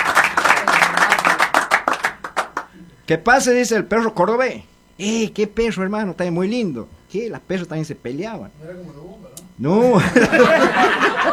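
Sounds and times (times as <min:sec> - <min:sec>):
laughter: 0:00.0 - 0:02.2, 0:09.8 - 0:11.3
audience applause for a performer: 0:00.0 - 0:02.7
speech: 0:03.1 - 0:11.3.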